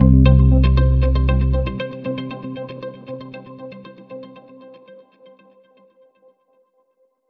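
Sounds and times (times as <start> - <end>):
indie music sting with 808: 0.0 - 1.8.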